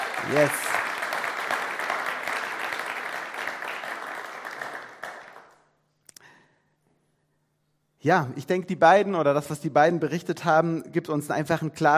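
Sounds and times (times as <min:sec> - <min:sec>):
audience applause: 0:00.0 - 0:05.6
speech: 0:00.2 - 0:00.8, 0:08.0 - 0:11.9.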